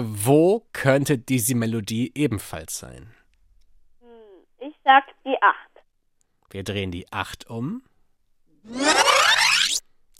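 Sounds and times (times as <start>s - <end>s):
speech: 0.0s - 3.2s, 4.9s - 5.7s, 6.5s - 7.9s, 8.6s - 9.4s
tape rewinding with a rising whirring sweep: 8.7s - 9.8s.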